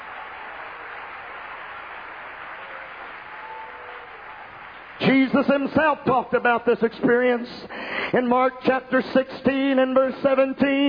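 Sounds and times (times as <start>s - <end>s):
audience clapping hands: 0.0s - 6.1s
speech: 5.0s - 10.8s.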